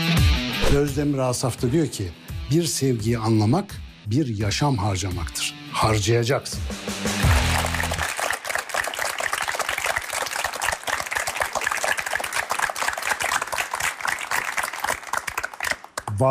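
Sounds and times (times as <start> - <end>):
speech: 0.7 - 7.0
audience applause: 7.2 - 16.2.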